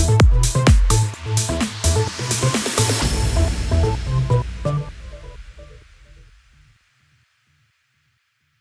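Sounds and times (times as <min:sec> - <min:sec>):
electro house music bed in E minor at 128 BPM: 0:00.0 - 0:05.8.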